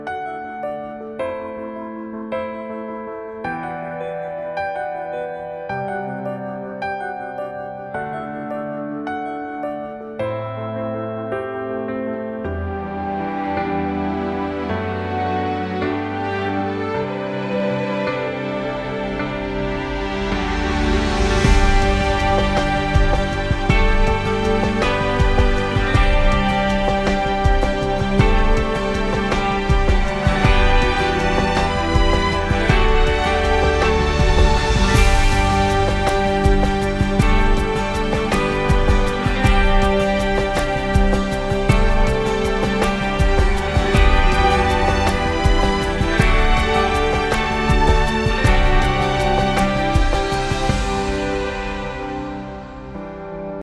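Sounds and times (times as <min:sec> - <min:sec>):
audition cut instrumental: 0:00.0 - 0:53.6.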